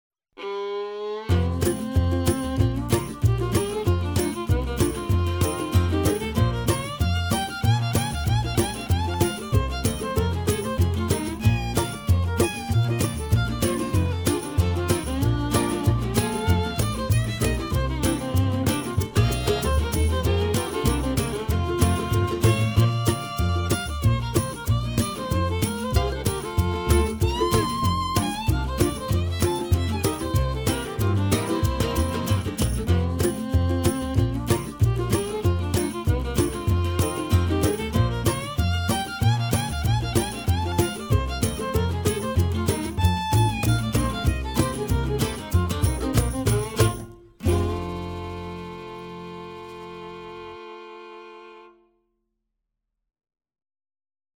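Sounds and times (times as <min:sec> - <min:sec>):
bluegrass mandolin: 0:00.4 - 0:51.7.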